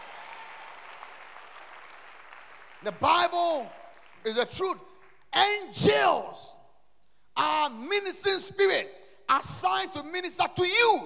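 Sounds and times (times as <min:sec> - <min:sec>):
audience clapping: 0:00.0 - 0:05.3
speech: 0:02.8 - 0:06.6, 0:07.4 - 0:11.0.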